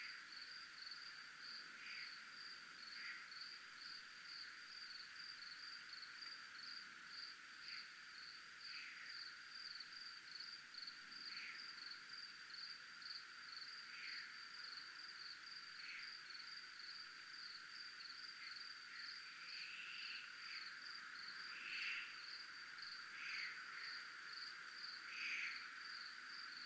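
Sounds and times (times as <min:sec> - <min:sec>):
cricket trilling: 0:00.0 - 0:26.6
faint buzzy insect notes: 0:00.0 - 0:26.6.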